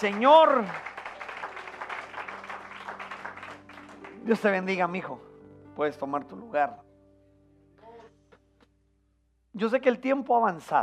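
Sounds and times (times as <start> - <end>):
speech: 0.0 - 0.9, 4.2 - 6.8, 9.6 - 10.8
audience clapping: 0.0 - 4.8.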